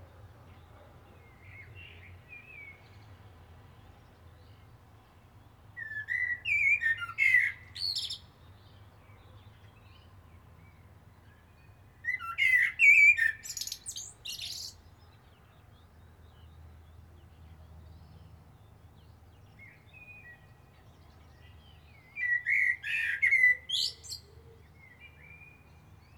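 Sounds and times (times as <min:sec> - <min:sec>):
common blackbird singing: 0:05.8 - 0:10.1, 0:11.3 - 0:17.3, 0:19.0 - 0:26.1.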